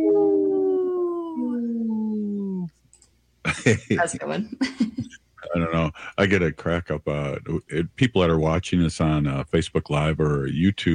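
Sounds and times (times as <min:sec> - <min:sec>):
wolf howling: 0:00.0 - 0:02.7
laughter: 0:03.5 - 0:07.9
speech: 0:03.5 - 0:10.9.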